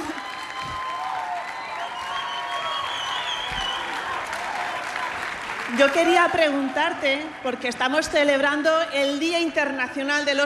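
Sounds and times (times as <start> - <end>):
faint cheers: 0.0 - 5.4
audience applause: 0.0 - 7.7
speech: 5.7 - 10.4.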